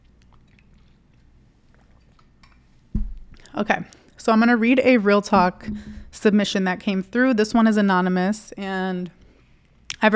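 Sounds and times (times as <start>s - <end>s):
person drinking water: 0.0s - 4.2s
speech: 3.5s - 9.2s.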